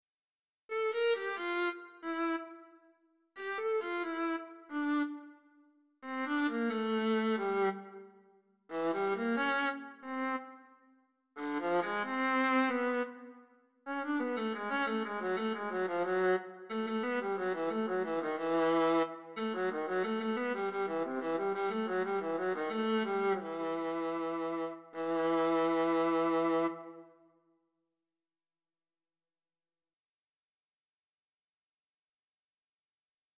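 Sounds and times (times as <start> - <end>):
viola piece: 0.7 - 2.8, 3.4 - 10.7, 11.4 - 27.2.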